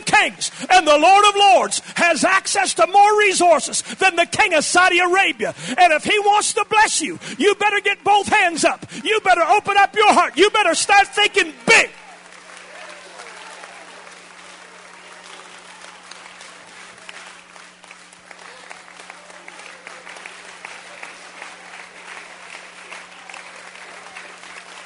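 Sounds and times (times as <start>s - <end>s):
speech: 0.2s - 12.0s
audience hand clapping: 7.2s - 24.8s.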